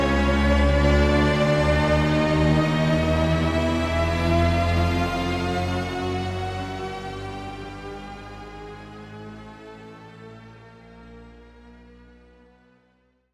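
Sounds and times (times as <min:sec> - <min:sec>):
Spitfire Chamber Strings Shepard tone: 0:00.0 - 0:06.2.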